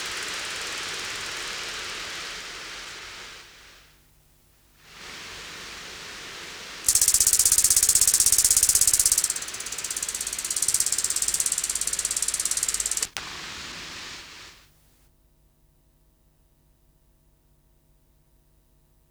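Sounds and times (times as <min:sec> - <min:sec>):
Cicada orni: 0:00.0 - 0:04.0, 0:04.8 - 0:14.6.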